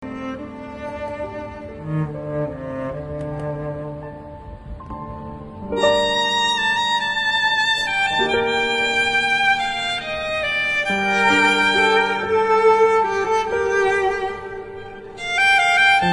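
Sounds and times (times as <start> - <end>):
violin: 0.0 - 16.1.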